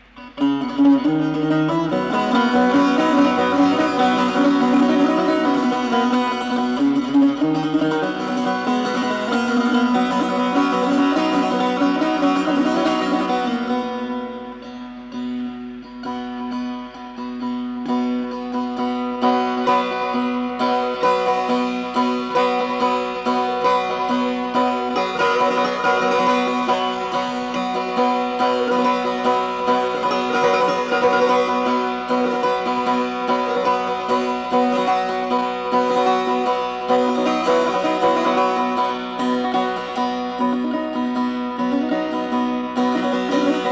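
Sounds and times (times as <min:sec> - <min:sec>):
improvisation in the Mahoor mode: 0:00.0 - 0:43.6.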